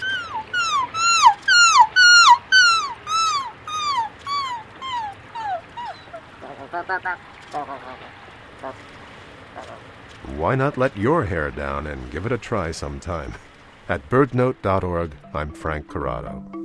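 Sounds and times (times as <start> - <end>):
human imitating gull calls: 0.0 - 8.9, 9.5 - 10.5
speech: 6.9 - 9.0, 9.6 - 16.6.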